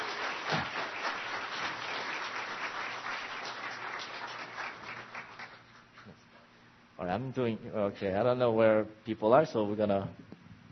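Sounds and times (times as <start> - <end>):
crowd applauding to welcome a speaker: 0.0 - 5.8
speech: 7.0 - 10.2.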